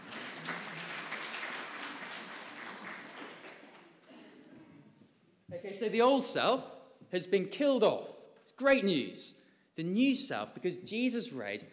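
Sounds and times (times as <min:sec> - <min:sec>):
crowd applause: 0:00.0 - 0:04.0
speech: 0:05.5 - 0:11.7.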